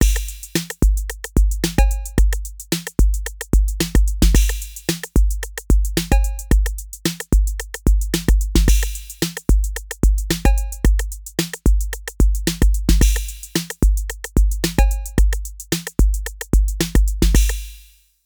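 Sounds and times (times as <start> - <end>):
TR808 drum machine: 0.0 - 17.8.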